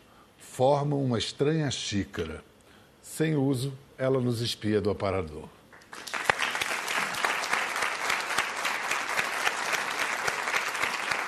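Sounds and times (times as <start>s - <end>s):
speech: 0.6s - 2.5s, 3.2s - 6.1s
audience clapping: 5.7s - 11.2s.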